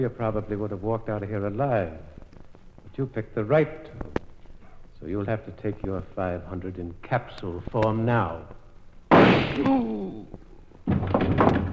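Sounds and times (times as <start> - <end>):
speech: 0.0 - 2.2, 3.0 - 4.2, 5.0 - 8.6, 9.2 - 10.4
gunshot: 9.1 - 9.7
person crying out: 9.6 - 10.4.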